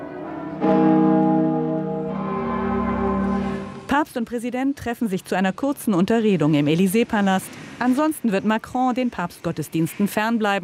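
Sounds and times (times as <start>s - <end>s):
church bells ringing in Paris: 0.0s - 3.9s
speech: 4.0s - 10.6s.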